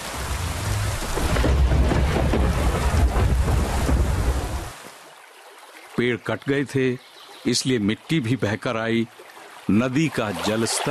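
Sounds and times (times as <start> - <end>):
heavy rain: 0.0 - 5.1
speech: 6.0 - 10.8.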